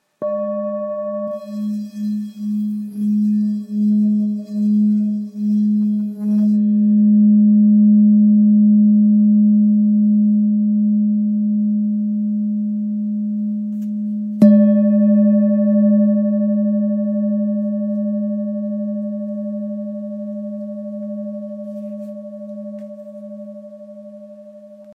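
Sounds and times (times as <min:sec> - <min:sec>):
antique bowl tone in G sharp: 0:00.0 - 0:24.9.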